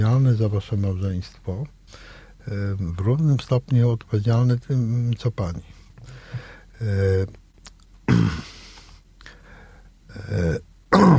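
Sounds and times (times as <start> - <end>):
speech: 0.0 - 7.4, 10.2 - 11.1
speaker clearing throat: 8.1 - 8.6, 10.2 - 11.1.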